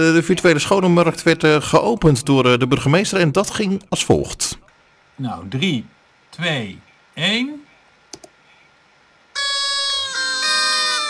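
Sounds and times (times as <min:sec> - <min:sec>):
speech: 0:00.0 - 0:04.6, 0:05.2 - 0:07.6
horn being blown: 0:09.4 - 0:11.0.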